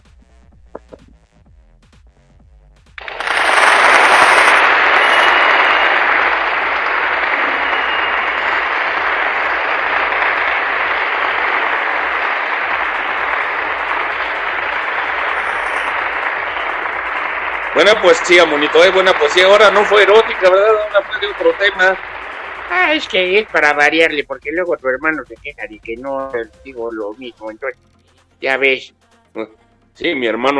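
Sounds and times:
faint rhythmic low thumping: 0.0 - 3.0, 19.8 - 28.4
crowd applause: 3.0 - 27.7
speech: 17.8 - 22.1, 22.7 - 27.8, 28.4 - 30.5.

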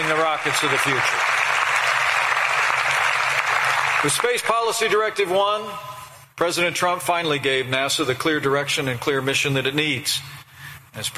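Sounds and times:
audience applause: 0.0 - 4.8
speech: 0.4 - 1.6, 4.0 - 11.1.

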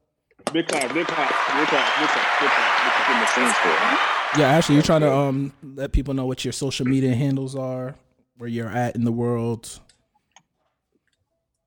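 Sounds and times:
speech: 0.5 - 9.9
clapping applause: 0.6 - 5.0.

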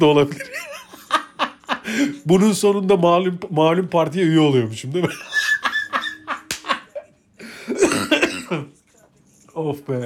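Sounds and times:
speech: 0.0 - 0.7, 1.9 - 5.4, 8.5 - 8.8, 9.6 - 10.0
laughter: 0.3 - 2.2, 5.0 - 8.1
cough: 7.7 - 8.7.

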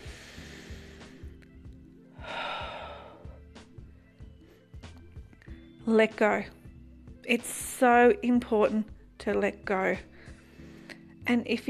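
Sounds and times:
slow breath in and out during a guided forgiveness and healing meditation: 0.0 - 1.4, 2.1 - 4.5, 10.0 - 11.2
speech: 5.9 - 6.6, 7.3 - 10.1, 11.3 - 11.6.

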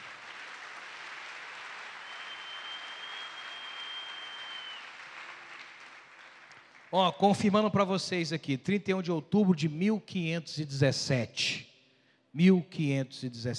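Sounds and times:
audience applause: 0.0 - 7.0
speech: 6.9 - 11.7, 12.4 - 13.5.

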